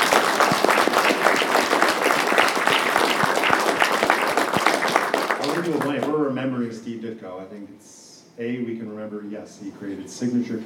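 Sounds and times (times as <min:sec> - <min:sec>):
audience applause: 0:00.0 - 0:06.1
speech: 0:06.8 - 0:10.6.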